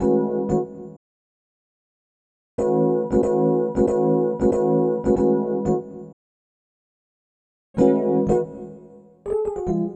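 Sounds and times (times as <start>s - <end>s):
keyboard: 0.0s - 1.0s, 2.6s - 6.2s, 7.8s - 9.9s.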